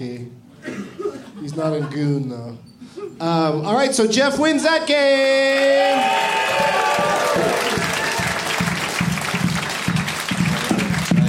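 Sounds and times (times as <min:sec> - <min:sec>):
speech: 0:01.4 - 0:07.8
small group clapping: 0:05.2 - 0:11.2.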